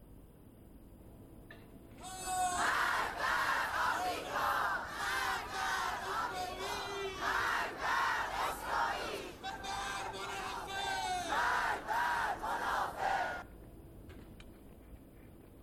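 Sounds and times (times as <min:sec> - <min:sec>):
large protest crowd chanting slogans in the street: 0:02.0 - 0:13.4.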